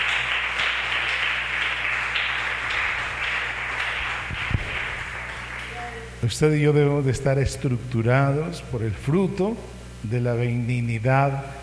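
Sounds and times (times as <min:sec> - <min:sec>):
audience applause: 0:00.0 - 0:06.0
speech: 0:06.2 - 0:11.6.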